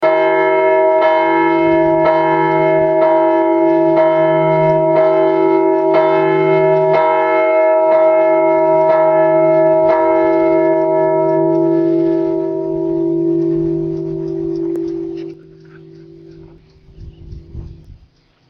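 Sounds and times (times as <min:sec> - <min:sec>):
bell tower tocsin ringing: 0:00.0 - 0:17.9.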